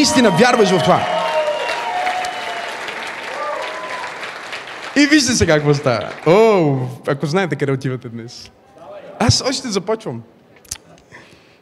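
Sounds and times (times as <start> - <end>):
speech: 0.0 - 1.1, 5.0 - 8.6, 9.2 - 10.4
audience clapping: 0.0 - 6.9.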